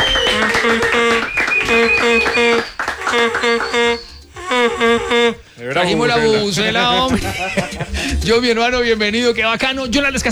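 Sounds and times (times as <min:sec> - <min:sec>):
voices cheering and shouting: 0:00.0 - 0:04.1, 0:05.1 - 0:08.3
group clapping: 0:00.0 - 0:05.4
laughter: 0:00.0 - 0:10.2
speech: 0:03.4 - 0:04.0, 0:04.8 - 0:10.2.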